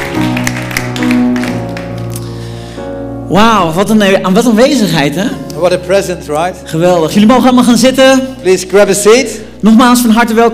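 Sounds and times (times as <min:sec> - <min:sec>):
audience applause: 0:00.0 - 0:02.2
speech: 0:03.3 - 0:10.5.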